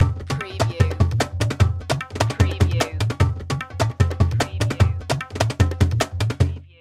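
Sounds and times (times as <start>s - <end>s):
music: 0.0s - 6.8s.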